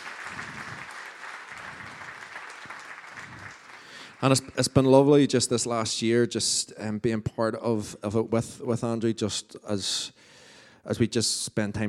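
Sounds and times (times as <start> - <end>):
round of applause: 0.0 - 5.3
speech: 4.2 - 11.8.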